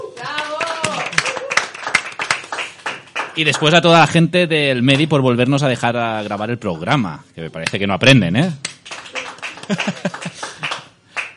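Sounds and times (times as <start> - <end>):
audience applause: 0.4 - 3.8, 8.8 - 11.3
speech: 3.4 - 8.7, 9.7 - 10.4
laughter: 9.4 - 10.8.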